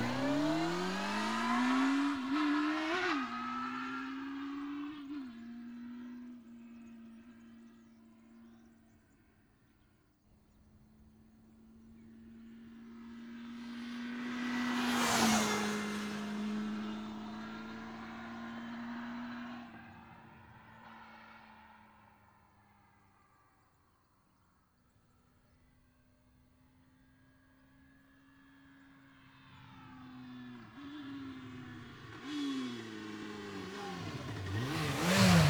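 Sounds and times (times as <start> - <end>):
Honda CBR 900 Fireblade motorcycle engine: 0.0 - 4.8, 12.5 - 20.5, 29.0 - 35.4.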